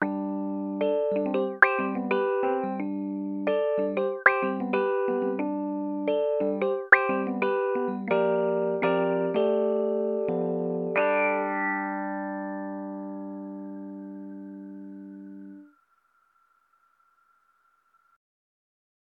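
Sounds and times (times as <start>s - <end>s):
Rhodes electric piano through Elektron Analog Heat mid drive filter: 0.0s - 17.7s.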